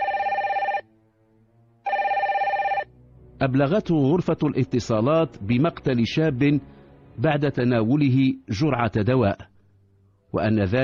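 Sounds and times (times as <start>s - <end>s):
telephone ringing: 0.0s - 0.9s, 1.8s - 2.9s
speech: 3.4s - 9.5s, 10.3s - 10.8s.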